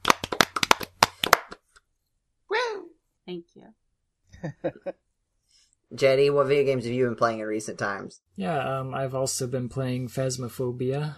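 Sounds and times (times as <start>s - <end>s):
hands clapping: 0.0s - 1.7s
speech: 3.3s - 5.0s, 5.9s - 11.1s
laughter: 4.4s - 4.9s
short vocal exclamation with a falling pitch: 4.4s - 4.9s.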